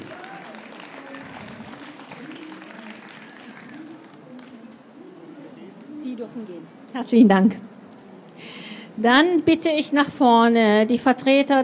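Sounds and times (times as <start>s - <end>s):
audience applause: 0.0s - 4.8s
speech: 6.1s - 7.7s, 9.0s - 11.6s.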